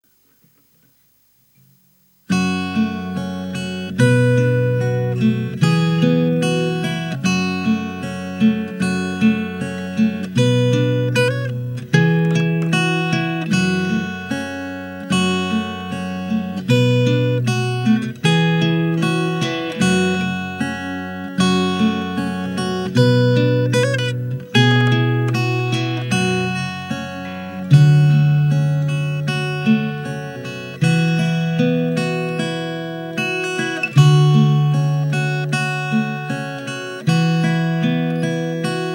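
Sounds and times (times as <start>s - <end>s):
Martin mini guitar: 2.3s - 38.9s.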